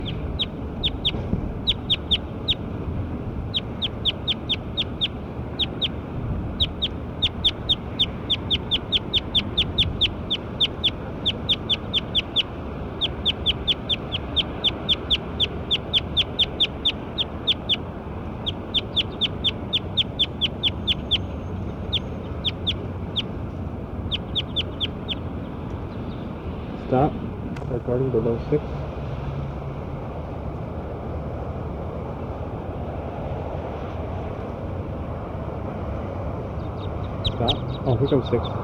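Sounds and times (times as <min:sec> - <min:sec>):
bird chirping: 0:00.0 - 0:02.6, 0:03.5 - 0:23.4, 0:24.0 - 0:26.3, 0:36.6 - 0:38.6
steady low hum: 0:00.0 - 0:38.6
speech: 0:28.4 - 0:28.8, 0:38.2 - 0:38.6.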